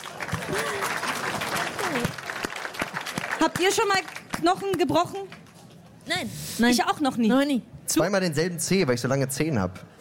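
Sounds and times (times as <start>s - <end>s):
small group clapping: 0.0s - 5.6s
speech: 3.4s - 5.4s, 6.1s - 9.9s.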